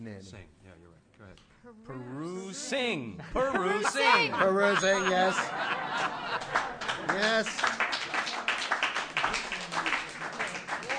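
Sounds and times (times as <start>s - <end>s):
speech: 0.0s - 8.3s
laughter: 3.2s - 8.4s
audience applause: 5.2s - 10.9s.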